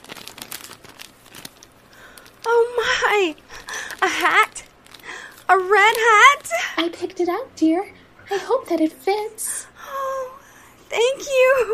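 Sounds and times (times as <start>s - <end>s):
gift wrapping paper being torn open: 0.0s - 6.6s
speech: 3.2s - 4.6s, 5.5s - 9.6s, 11.0s - 11.7s.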